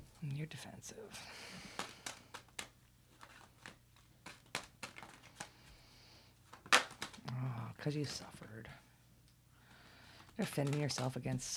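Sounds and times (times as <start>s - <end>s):
speech: 0.2s - 1.8s, 7.8s - 8.8s, 10.4s - 11.5s
cards drawn and laid down during a reading: 1.2s - 7.4s, 9.7s - 11.5s.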